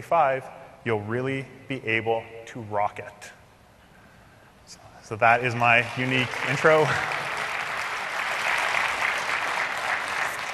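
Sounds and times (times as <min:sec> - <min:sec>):
speech: 0:00.0 - 0:03.4, 0:04.7 - 0:07.2
audience applause: 0:05.5 - 0:10.5.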